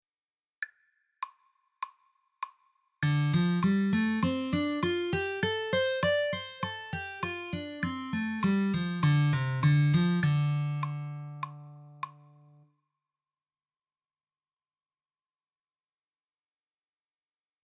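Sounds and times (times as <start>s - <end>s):
G minor pentatonic melody: 3.0s - 12.6s.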